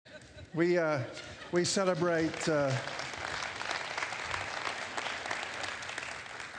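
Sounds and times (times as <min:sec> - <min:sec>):
speech: 0:00.5 - 0:03.0
audience applause: 0:01.6 - 0:06.5.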